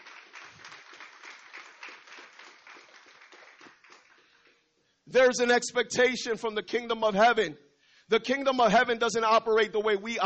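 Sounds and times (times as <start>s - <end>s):
church audience applause: 0.0s - 4.5s
speech: 5.1s - 10.2s.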